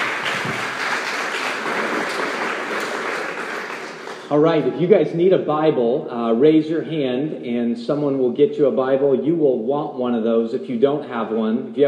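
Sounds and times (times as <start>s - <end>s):
audience applause: 0.0s - 4.7s
speech: 4.3s - 11.8s.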